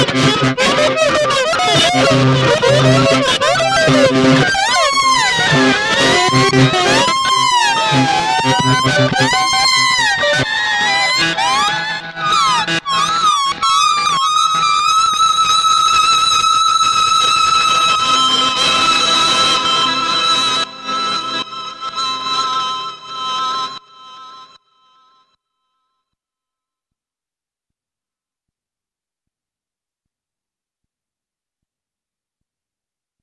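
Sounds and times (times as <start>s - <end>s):
electric guitar solo: 0.0s - 24.6s.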